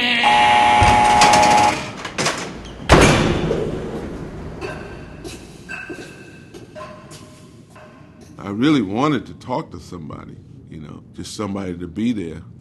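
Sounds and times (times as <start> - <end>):
heavy steel prison door opening electrically: 0.4 - 5.2
speech: 8.6 - 12.5.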